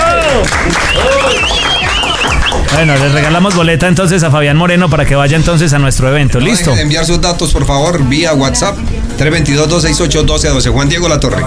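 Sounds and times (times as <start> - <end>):
applause for a quiz winner on a radio show: 0.0 - 3.8
rising and falling whistle-like tones: 0.8 - 3.0
speech: 2.8 - 11.4.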